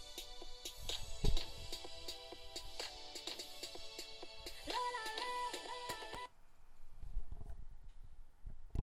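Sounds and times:
afrobeats music: 0:00.0 - 0:06.3.

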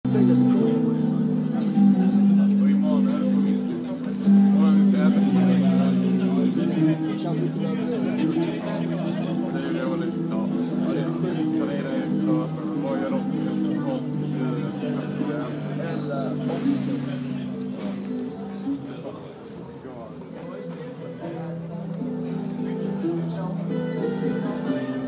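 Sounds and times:
Portuguese guitar: 0:00.0 - 0:25.0.

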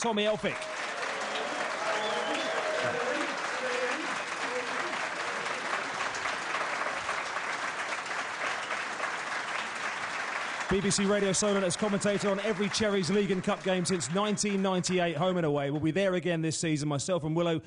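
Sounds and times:
speech: 0:00.0 - 0:00.7, 0:02.8 - 0:03.7, 0:10.7 - 0:17.6
audience applause: 0:00.0 - 0:15.0.

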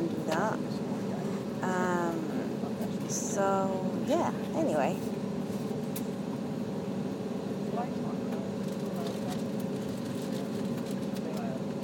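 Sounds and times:
murmurs of voices: 0:00.0 - 0:05.1, 0:07.6 - 0:11.8
airplane cabin droning engine hum: 0:00.0 - 0:11.8
speech: 0:03.1 - 0:05.1.

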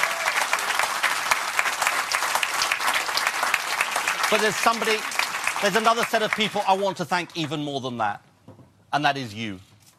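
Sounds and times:
audience applause: 0:00.0 - 0:07.0
speech: 0:04.3 - 0:08.3, 0:08.9 - 0:09.7.

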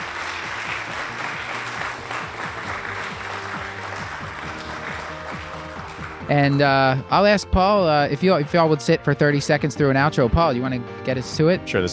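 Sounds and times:
audience applause: 0:00.0 - 0:06.8
speech: 0:06.3 - 0:11.9.

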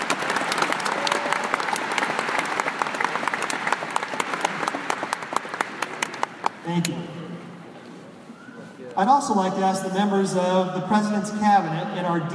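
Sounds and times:
large audience applause: 0:00.0 - 0:06.7
speech: 0:06.7 - 0:07.2, 0:09.0 - 0:12.3.

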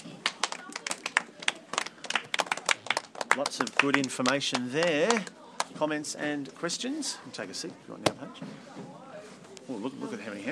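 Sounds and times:
small group clapping: 0:00.0 - 0:05.8
speech: 0:03.4 - 0:09.0, 0:09.7 - 0:10.5.

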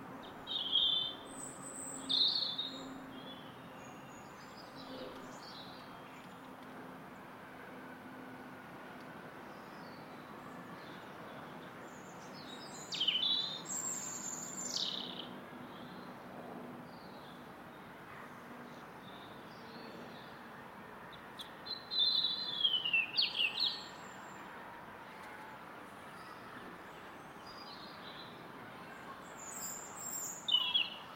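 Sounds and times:
loud garden robin singing in London: 0:00.2 - 0:03.4, 0:12.1 - 0:15.3, 0:21.4 - 0:24.0, 0:29.4 - 0:31.0.

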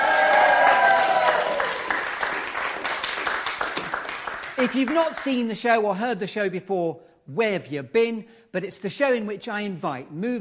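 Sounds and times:
audience cheering and applauding: 0:00.0 - 0:05.3
speech: 0:04.6 - 0:10.4.

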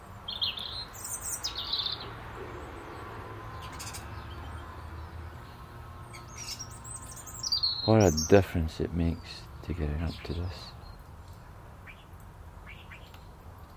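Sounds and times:
birds chirping: 0:00.0 - 0:13.7
speech: 0:07.9 - 0:10.8.

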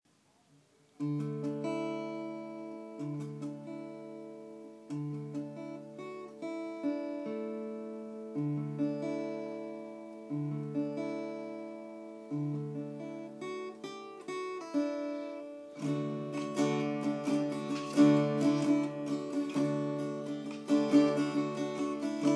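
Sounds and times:
guitar: 0:00.5 - 0:22.3.

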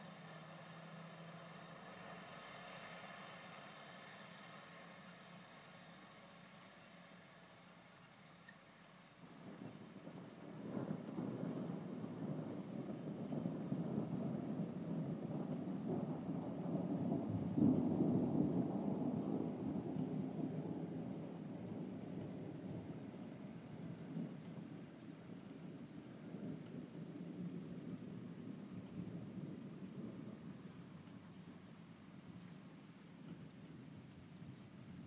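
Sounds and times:
rain over Lightmoor: 0:00.0 - 0:35.0
thunder over Lightmoor: 0:09.4 - 0:31.6.

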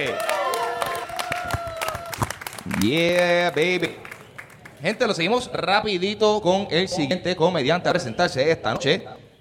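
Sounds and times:
audience applause: 0:00.0 - 0:04.8
speech: 0:02.7 - 0:04.1, 0:04.8 - 0:09.2.

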